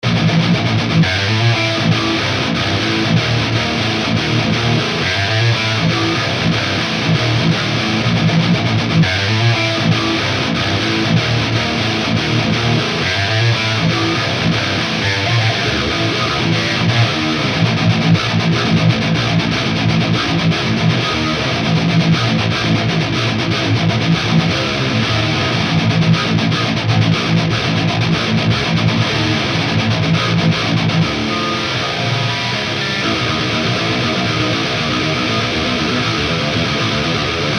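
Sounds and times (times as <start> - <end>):
guitar through Mesa amplifier cabinet: 0.0 - 37.5.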